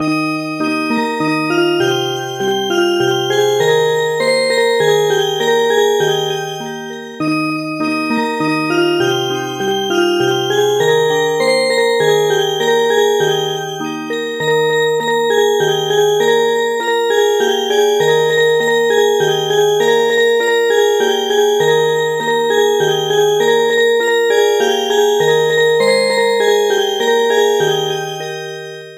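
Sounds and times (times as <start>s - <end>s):
music box: 0.1s - 28.9s.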